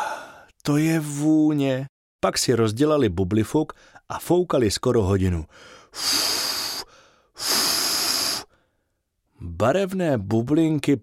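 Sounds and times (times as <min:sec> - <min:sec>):
deep breath in: 0:00.0 - 0:00.5, 0:05.5 - 0:09.0
speech: 0:00.7 - 0:06.5, 0:09.4 - 0:11.0.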